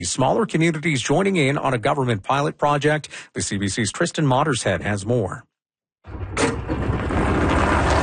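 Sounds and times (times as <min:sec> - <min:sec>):
speech: 0:00.0 - 0:06.5
golf cart engine hum: 0:06.4 - 0:08.0.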